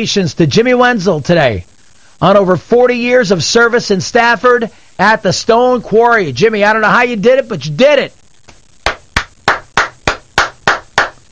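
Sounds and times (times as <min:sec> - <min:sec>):
speech: 0:00.0 - 0:08.2
hard hand claps: 0:08.5 - 0:11.2.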